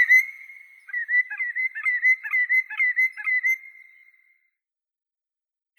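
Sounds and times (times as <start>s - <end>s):
common greenshank Tringa nebularia calling: 0.0s - 3.9s.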